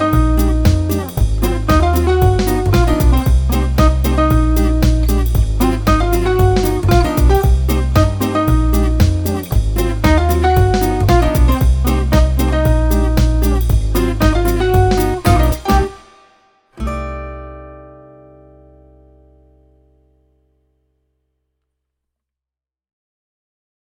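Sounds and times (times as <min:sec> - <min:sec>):
upbeat swing jazz: 0:00.0 - 0:16.0.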